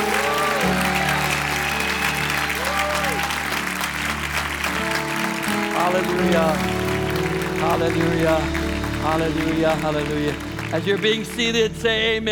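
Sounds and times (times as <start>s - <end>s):
people clapping in praise: 0.0s - 12.1s
speech: 6.1s - 6.8s, 7.6s - 12.3s.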